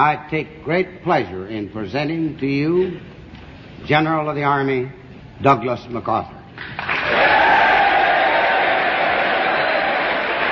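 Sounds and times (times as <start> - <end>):
speech: 0.0 - 3.2, 3.8 - 6.9
large indoor congressional audience applauding and cheering: 6.8 - 10.5.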